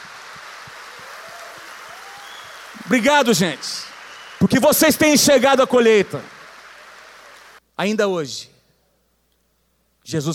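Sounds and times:
audience applause: 0:00.0 - 0:07.6
speech: 0:02.9 - 0:06.3, 0:07.8 - 0:08.5, 0:10.0 - 0:10.3.

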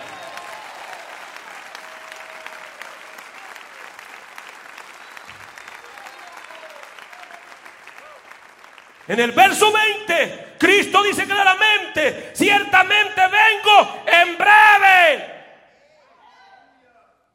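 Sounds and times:
audience applauding loudly: 0:00.0 - 0:10.4
speech: 0:09.1 - 0:15.3.

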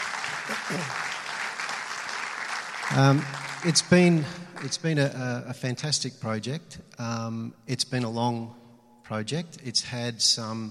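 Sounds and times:
audience round of applause: 0:00.0 - 0:04.8
speech: 0:00.5 - 0:01.1, 0:02.9 - 0:10.7.

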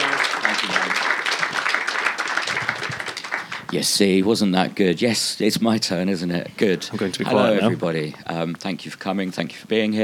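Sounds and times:
audience clapping: 0:00.0 - 0:04.2
speech: 0:03.7 - 0:10.0.

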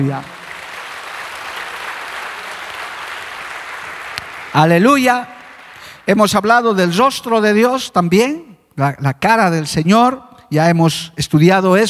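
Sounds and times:
speech: 0:00.0 - 0:00.4, 0:04.5 - 0:05.3, 0:06.1 - 0:11.8
audience applause: 0:00.0 - 0:06.0.

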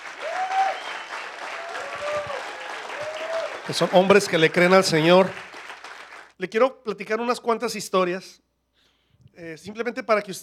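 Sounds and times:
audience applause: 0:00.0 - 0:06.3
speech: 0:03.7 - 0:05.4, 0:06.4 - 0:08.4, 0:09.4 - 0:10.4.

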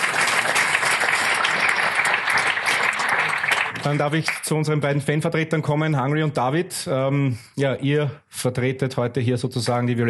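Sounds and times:
audience applause: 0:00.0 - 0:04.4
speech: 0:03.8 - 0:10.0.

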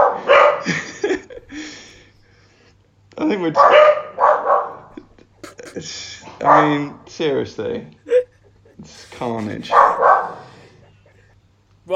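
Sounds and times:
dogs barking: 0:00.0 - 0:01.0, 0:03.5 - 0:05.0, 0:06.3 - 0:07.0, 0:09.5 - 0:11.3
laughter: 0:00.6 - 0:02.1, 0:04.9 - 0:06.3, 0:07.9 - 0:11.5
speech: 0:03.3 - 0:04.0, 0:05.8 - 0:08.0, 0:09.2 - 0:10.1.

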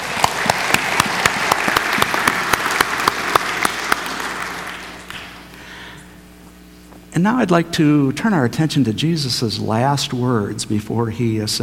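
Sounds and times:
audience applause: 0:00.0 - 0:05.5
speech: 0:07.2 - 0:11.6.

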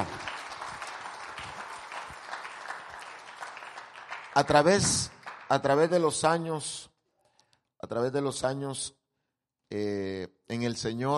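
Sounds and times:
audience applause: 0:00.0 - 0:05.9
speech: 0:04.4 - 0:06.9, 0:07.9 - 0:09.0, 0:09.7 - 0:11.1.

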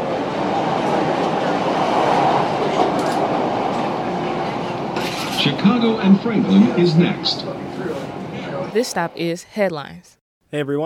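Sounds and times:
train departing after doors close: 0:00.0 - 0:10.0
speech: 0:05.8 - 0:08.1, 0:08.7 - 0:10.8.

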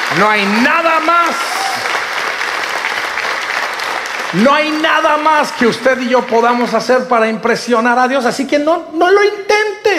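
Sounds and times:
audience applause: 0:00.0 - 0:06.8
speech: 0:00.2 - 0:02.0, 0:04.3 - 0:09.9.

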